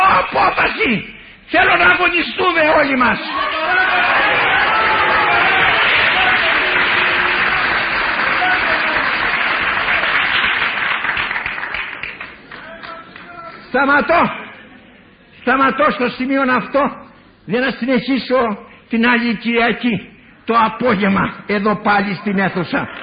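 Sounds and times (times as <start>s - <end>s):
speech: 0.3s - 4.1s, 13.7s - 14.4s, 15.4s - 23.0s
audience applause: 3.3s - 13.3s.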